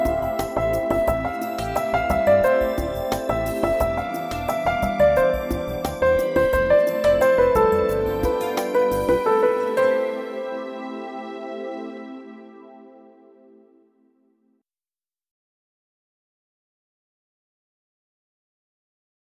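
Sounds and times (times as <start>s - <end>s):
soft instrumental music: 0.0s - 14.2s.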